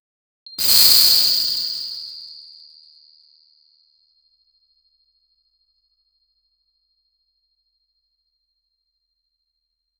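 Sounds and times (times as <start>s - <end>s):
flash powder burst: 0.6s - 2.1s.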